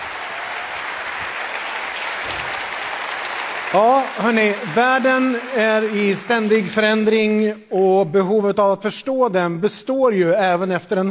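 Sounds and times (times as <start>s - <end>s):
audience applause: 0.0s - 7.2s
speech: 3.7s - 11.0s.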